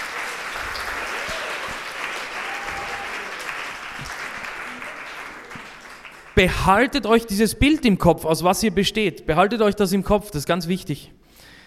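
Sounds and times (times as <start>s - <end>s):
applause: 0.0s - 7.1s
speech: 6.4s - 11.2s.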